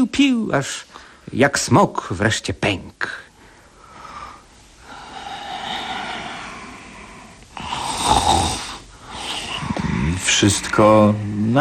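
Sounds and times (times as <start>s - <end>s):
speech: 0.1s - 3.2s, 10.4s - 11.5s
sleeping woman snoring: 4.8s - 10.2s.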